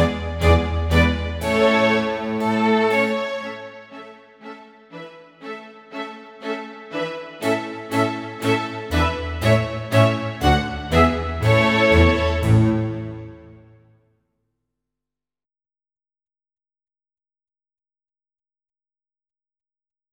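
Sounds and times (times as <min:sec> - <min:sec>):
backing track: 0:00.0 - 0:04.0, 0:07.4 - 0:13.7.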